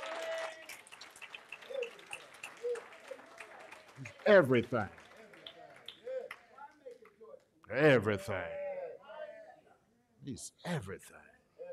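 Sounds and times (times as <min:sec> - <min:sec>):
audience clapping: 0:00.0 - 0:07.2
speech: 0:04.0 - 0:05.0, 0:07.8 - 0:08.6, 0:10.3 - 0:11.3.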